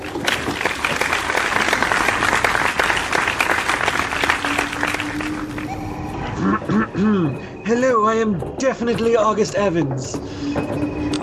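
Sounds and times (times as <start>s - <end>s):
audience applause: 0.0s - 6.0s
speech: 7.0s - 11.2s.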